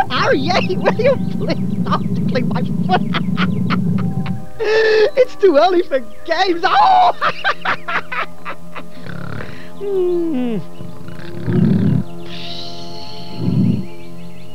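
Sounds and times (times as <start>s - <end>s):
laughter: 0.0s - 5.2s, 6.6s - 10.2s
speech: 0.1s - 3.8s, 4.6s - 8.3s, 9.8s - 10.8s
loud snoring: 8.9s - 9.8s, 10.4s - 12.2s, 13.4s - 13.9s.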